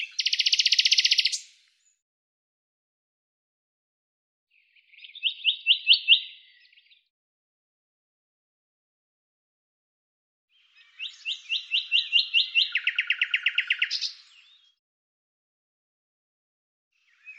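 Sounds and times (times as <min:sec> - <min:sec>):
bird song with scratchy notes and a run of high sharp notes: 0:00.0 - 0:02.0, 0:04.5 - 0:07.1, 0:10.5 - 0:14.8, 0:16.9 - 0:17.3.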